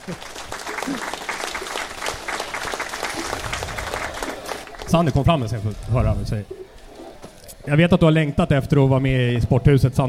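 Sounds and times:
audience applause: 0.0s - 6.1s
speech: 0.1s - 0.3s, 4.9s - 6.6s, 7.7s - 10.0s.

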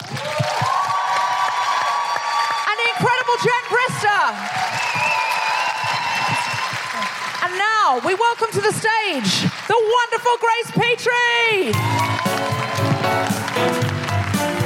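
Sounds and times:
audience applause: 0.0s - 10.3s, 11.7s - 14.6s
speech: 7.9s - 13.7s.

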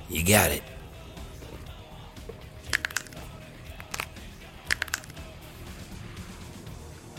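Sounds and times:
speech: 0.1s - 0.8s
neck snapping crunch: 2.7s - 5.3s.

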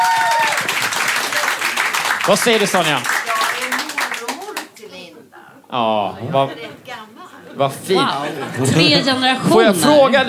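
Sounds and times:
high whistle or whoop: 0.0s - 0.6s
audience applause: 0.0s - 4.8s
speech: 2.3s - 3.2s, 5.7s - 7.0s, 7.6s - 10.2s
laughter: 5.4s - 10.2s.

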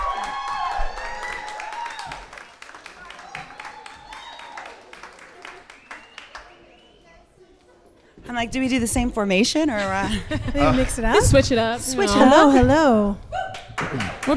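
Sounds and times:
whoops and cheers: 0.0s - 5.0s, 13.3s - 13.7s
audience applause: 0.0s - 7.0s, 13.5s - 14.3s
speech: 8.3s - 13.2s, 13.9s - 14.3s
laughter: 9.7s - 12.8s.

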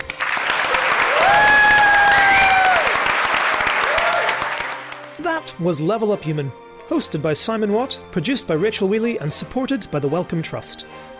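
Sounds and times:
audience applause at the Science Museum: 0.0s - 5.2s
speech: 5.6s - 11.1s.

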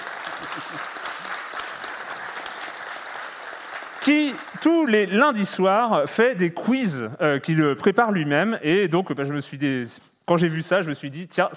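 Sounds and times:
audience applause: 0.0s - 5.3s
speech: 0.6s - 1.0s, 4.0s - 11.5s.

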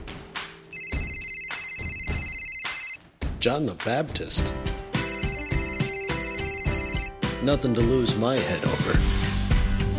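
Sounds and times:
thumping beats: 0.0s - 7.1s
telephone ringing with a bright high electronic tone: 0.7s - 3.0s, 5.0s - 7.2s
speech: 3.4s - 4.8s, 7.4s - 9.3s.

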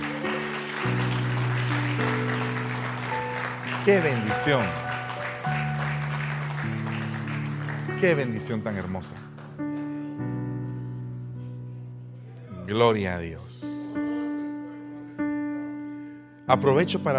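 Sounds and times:
audience clapping: 0.0s - 10.2s
sustained keyboard chords: 0.0s - 17.1s
speech: 3.9s - 4.8s, 8.0s - 9.3s, 12.7s - 13.7s, 16.5s - 17.1s.

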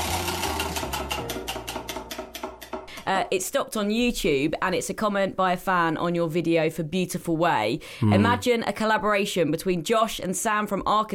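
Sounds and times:
prize wheel being spun ticking: 0.0s - 2.0s
speech: 3.1s - 11.1s.

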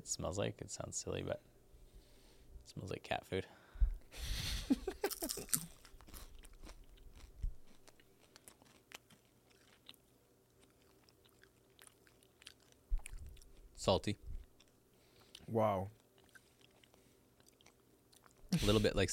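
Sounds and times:
speech: 0.0s - 1.5s, 2.7s - 5.6s, 13.8s - 14.3s, 15.5s - 16.0s, 18.6s - 19.1s
crispy crab being bitten and chewed: 5.0s - 13.8s, 14.4s - 18.5s.

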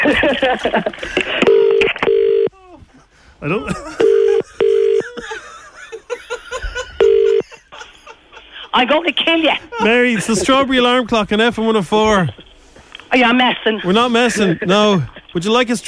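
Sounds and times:
laughter: 0.0s - 1.4s, 3.5s - 8.8s
speech: 0.4s - 1.4s, 3.4s - 4.1s, 8.8s - 12.4s, 13.1s - 15.8s
telephone number being dialed with DTMF tones: 1.4s - 2.5s, 7.0s - 7.4s.

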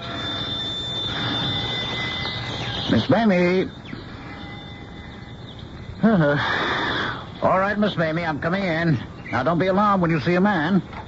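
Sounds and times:
old-fashioned doorbell ringing: 0.0s - 8.5s
speech: 2.9s - 3.9s, 6.0s - 6.8s, 7.4s - 11.0s.

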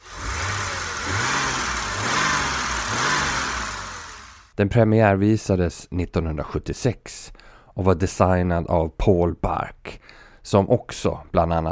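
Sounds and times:
BMW straight-six 3.2 litre car engine revving: 0.0s - 4.5s
speech: 4.6s - 11.7s.

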